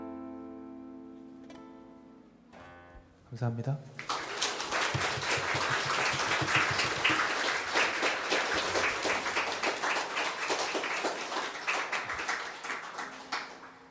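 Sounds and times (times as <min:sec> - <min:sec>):
speech: 0:03.3 - 0:04.1
audience applause: 0:04.0 - 0:13.8.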